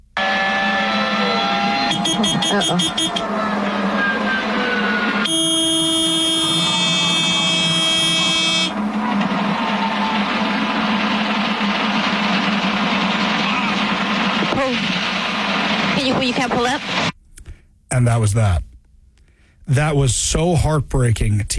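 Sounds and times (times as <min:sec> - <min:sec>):
helicopter cockpit alarms: 0:00.1 - 0:17.1
crashing helicopter's failing engine: 0:00.2 - 0:17.2
speech: 0:02.5 - 0:03.8, 0:18.0 - 0:18.6, 0:19.7 - 0:21.5.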